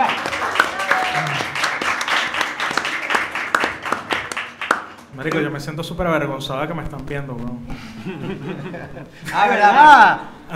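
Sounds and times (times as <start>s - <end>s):
live audience applause: 0.0s - 5.5s
speech: 5.2s - 10.5s
laughter: 7.7s - 10.4s.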